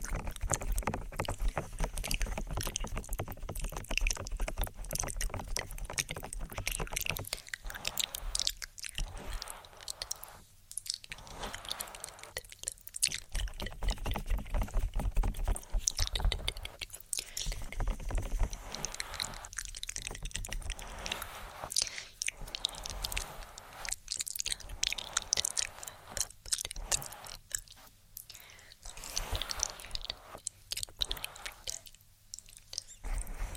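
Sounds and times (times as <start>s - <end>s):
ear tapping: 0.0s - 33.5s
soft breathy inaudible whispers: 6.6s - 12.8s, 15.9s - 33.5s.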